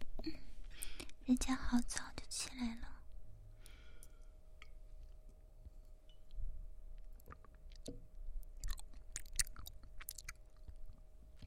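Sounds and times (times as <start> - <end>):
low steady hum: 0.0 - 11.4
speech: 0.2 - 0.4, 1.3 - 2.9
soft chewing while eating homemade rice porridge: 4.0 - 11.4.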